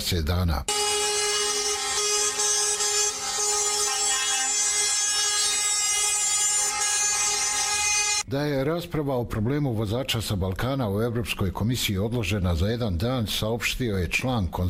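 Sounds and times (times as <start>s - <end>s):
speech: 0.0s - 0.8s, 8.3s - 14.6s
truck horns blaring in protest: 0.7s - 8.2s.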